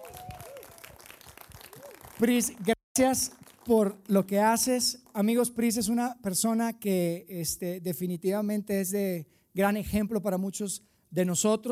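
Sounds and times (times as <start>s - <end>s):
audience clapping: 0.0s - 5.6s
speech: 2.2s - 11.7s.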